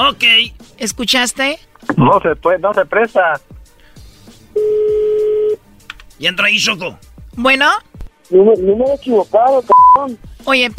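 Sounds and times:
speech: 0.0 - 3.5, 6.2 - 10.7
telephone tone of a number being dialed: 4.6 - 5.6.

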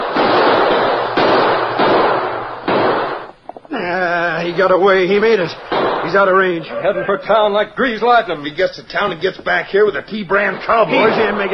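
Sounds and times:
gunshots: 0.0 - 3.7, 4.3 - 6.7, 10.4 - 11.5
laughter: 3.7 - 4.9, 6.1 - 8.6
speech: 4.6 - 11.5.

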